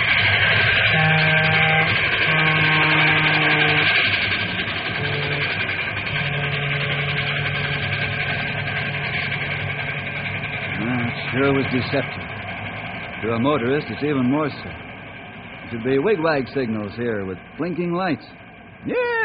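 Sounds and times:
train roaring past a crossing: 0.0 - 19.2
train horn blasts: 0.8 - 4.1, 4.8 - 8.0
speech: 11.4 - 12.2, 13.2 - 14.8, 15.7 - 19.2.

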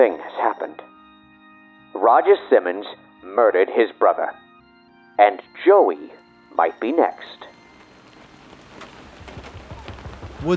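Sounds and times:
speech: 0.0 - 1.0, 1.9 - 4.4, 5.2 - 7.5, 10.4 - 10.5
rain: 7.8 - 10.5
wind: 7.8 - 10.5.

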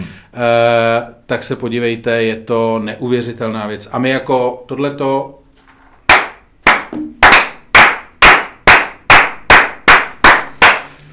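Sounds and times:
speech: 0.4 - 5.4
hands clapping in applause: 6.1 - 11.0.

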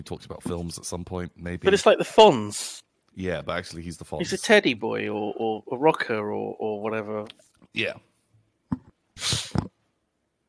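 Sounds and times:
speech: 0.0 - 8.1, 8.7 - 9.4
nose blowing: 9.2 - 9.7.

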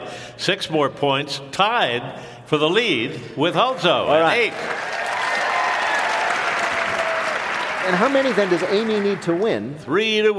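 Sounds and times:
speech: 0.4 - 5.0, 7.9 - 10.3
crowd clapping: 4.3 - 9.9
bright whoops: 4.8 - 7.8.

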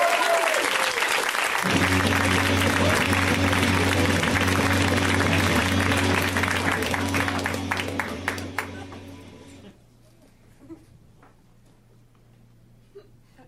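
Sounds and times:
audience applause for a comedian at a comedy show: 0.0 - 9.5.

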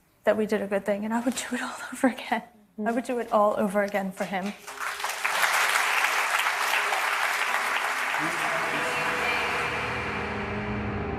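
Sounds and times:
speech: 0.2 - 4.8
audience applause: 4.6 - 10.6.

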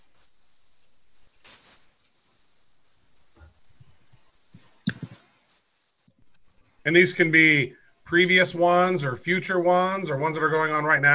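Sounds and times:
keyboard typing a search term: 4.1 - 5.2
speech: 6.8 - 11.1.

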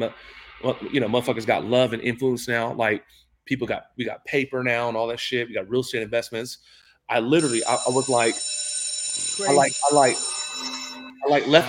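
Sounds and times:
speech: 0.0 - 8.7, 9.4 - 11.6
alarm bell ringing: 7.4 - 11.6
people talking loudly: 9.4 - 9.8.

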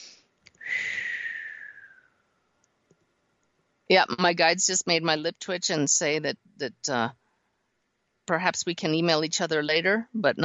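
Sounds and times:
deep inhale: 0.6 - 2.0
speech: 3.9 - 7.2, 8.3 - 10.4.

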